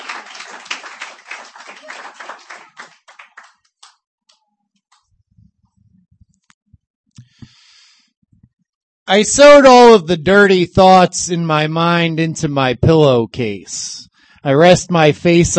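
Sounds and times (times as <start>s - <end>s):
audience clapping: 0.0s - 4.0s
speech: 9.1s - 15.5s.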